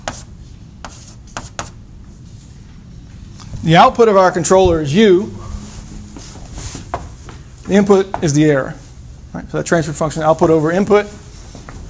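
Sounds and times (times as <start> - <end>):
handwriting strokes: 0.0 - 1.8
faint steady low hum: 0.0 - 11.8
speech: 3.6 - 5.4, 7.7 - 11.2.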